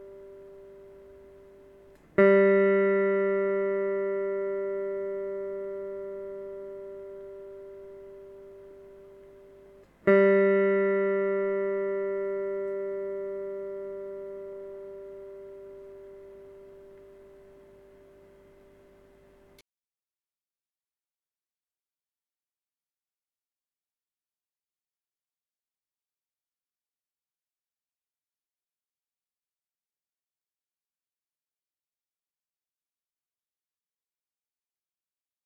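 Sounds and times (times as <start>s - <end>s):
electric guitar third string G being tuned: 0.0s - 19.6s.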